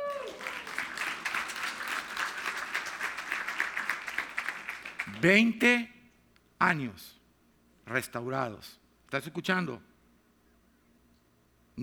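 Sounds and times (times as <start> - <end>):
audience applause: 0.0 - 5.3
speech: 5.1 - 5.9, 6.6 - 7.2, 7.9 - 9.9.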